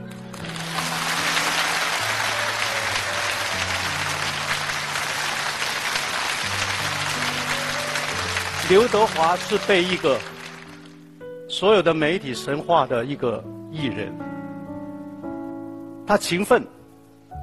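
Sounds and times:
audience applause: 0.0s - 11.0s
speech: 8.7s - 10.3s, 11.6s - 14.3s, 16.1s - 16.8s.

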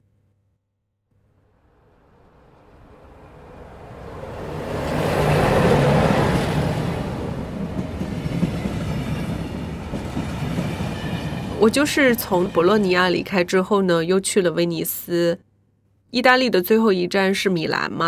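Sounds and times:
train running on rails: 1.7s - 13.6s
speech: 11.6s - 15.4s, 16.1s - 18.0s.

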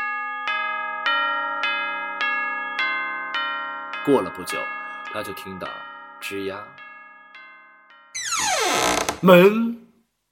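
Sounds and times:
church bell striking twelve: 0.0s - 8.1s
speech: 4.0s - 6.8s, 9.2s - 10.2s.

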